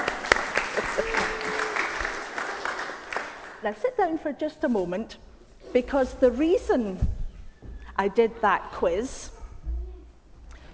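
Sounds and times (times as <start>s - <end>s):
audience applause: 0.0s - 3.6s
speech: 3.6s - 7.2s, 8.0s - 9.4s.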